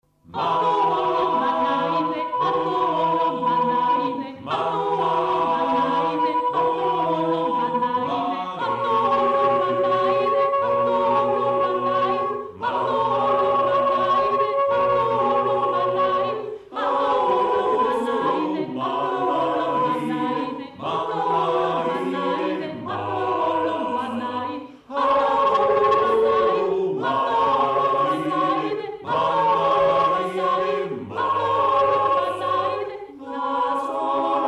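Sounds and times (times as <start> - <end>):
chanting: 0.2 - 34.4.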